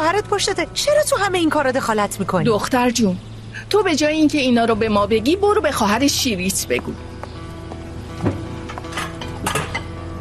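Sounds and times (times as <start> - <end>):
speech: 0.2 - 7.1
dishes clinking as a plate of food is prepared: 8.7 - 10.0.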